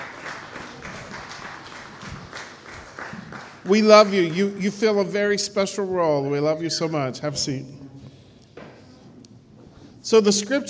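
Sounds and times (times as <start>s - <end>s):
crowd applause: 0.0s - 4.8s
speech: 3.7s - 7.8s, 10.1s - 10.6s.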